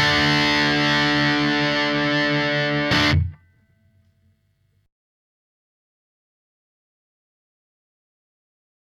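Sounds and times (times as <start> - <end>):
triode distortion: 0.0 - 3.9.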